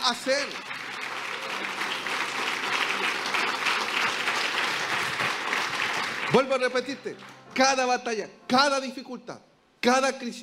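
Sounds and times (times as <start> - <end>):
crowd applauding: 0.0 - 7.6
speech: 0.1 - 0.7, 6.3 - 10.4.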